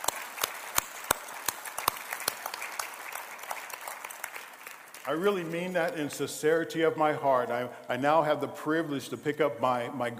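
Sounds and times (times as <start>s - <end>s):
audience clapping: 0.0s - 6.6s
speech: 5.1s - 10.1s.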